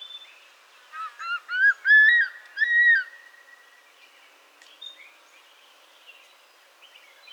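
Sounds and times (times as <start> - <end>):
Spilornis cheela ricketti crested serpent eagle: 0.9 - 3.5.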